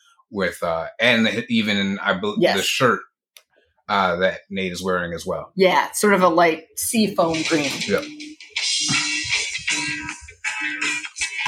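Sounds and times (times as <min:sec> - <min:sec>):
speech: 0:00.3 - 0:03.1, 0:03.9 - 0:08.3
cell phone ringtone playing a rock song: 0:07.2 - 0:11.4.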